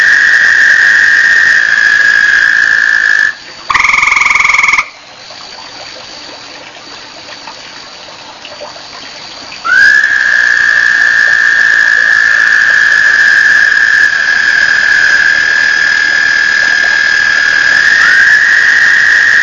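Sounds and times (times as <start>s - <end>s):
toads calling: 0.0s - 6.5s, 7.2s - 19.4s.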